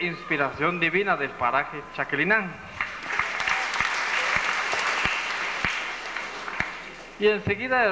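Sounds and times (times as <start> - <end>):
speech: 0.0 - 2.8, 7.2 - 7.9
audience applause: 2.8 - 7.4.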